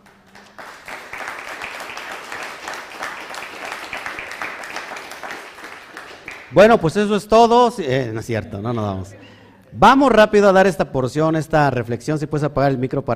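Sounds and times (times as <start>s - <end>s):
audience applause: 0.0s - 6.6s
speech: 6.5s - 13.1s.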